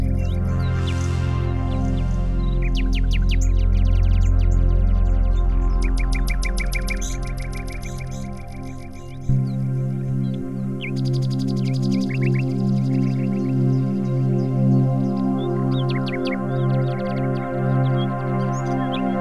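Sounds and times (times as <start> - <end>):
heavy low hum: 0.0 - 11.4
bird chirps and trills: 0.0 - 19.2.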